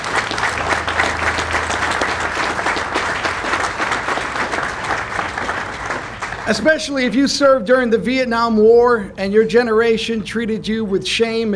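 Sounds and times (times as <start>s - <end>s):
audience applause from a large audience: 0.0s - 7.0s
speech: 6.5s - 11.5s.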